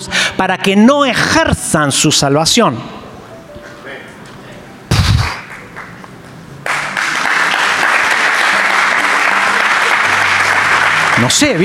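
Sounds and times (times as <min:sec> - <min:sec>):
speech: 0:00.4 - 0:03.1, 0:11.2 - 0:11.6
sharp thump: 0:04.9 - 0:05.4
crowd applauding: 0:05.3 - 0:11.6.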